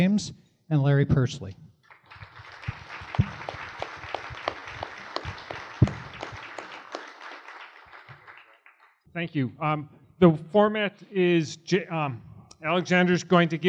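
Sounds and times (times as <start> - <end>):
speech: 0.0 - 1.6, 9.2 - 13.6
audience applause welcoming speakers at an Alaska World Affairs Council event: 1.9 - 9.0.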